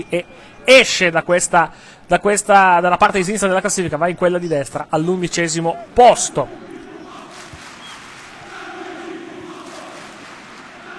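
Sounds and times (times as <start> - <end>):
speech: 0.0 - 6.8
football fans chanting in stadium: 6.1 - 10.9.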